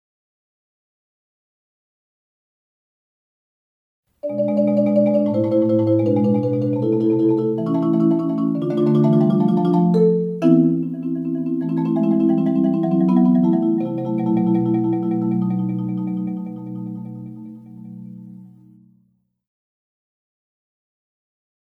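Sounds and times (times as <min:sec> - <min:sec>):
solo interlude music: 0:04.2 - 0:19.0.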